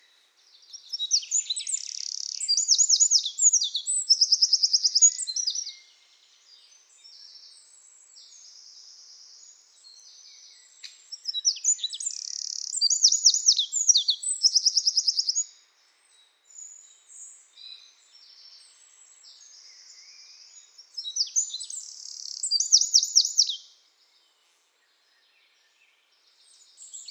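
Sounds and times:
Eurasian wren song: 0:00.7 - 0:05.9, 0:08.3 - 0:15.5, 0:19.4 - 0:23.8.

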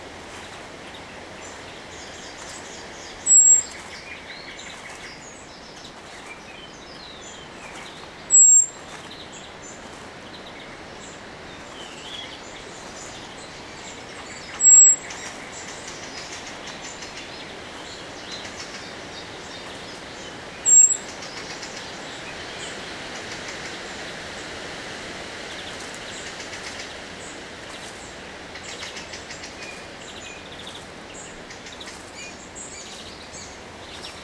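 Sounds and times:
small birds chirping: 0:00.0 - 0:24.6, 0:25.3 - 0:34.2
Eurasian blackbird thin whistle call: 0:03.2 - 0:03.7, 0:08.3 - 0:08.7, 0:14.6 - 0:15.0.

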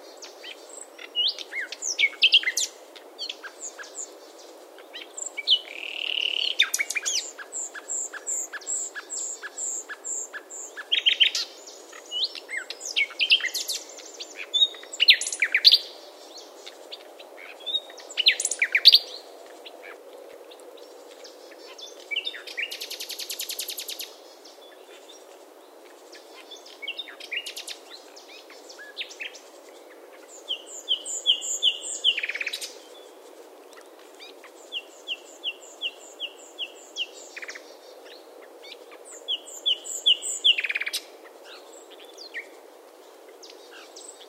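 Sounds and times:
Common nightingale song: 0:00.0 - 0:44.2.

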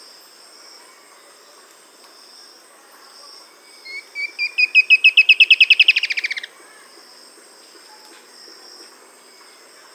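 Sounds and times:
bird trill: 0:03.8 - 0:06.5.

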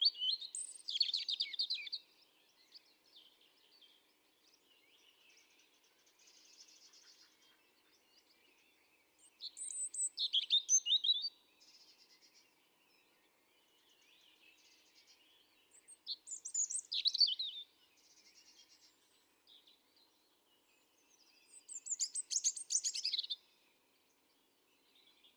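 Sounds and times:
European robin singing: 0:00.0 - 0:03.9, 0:06.5 - 0:13.1, 0:13.8 - 0:20.2, 0:20.9 - 0:23.6.

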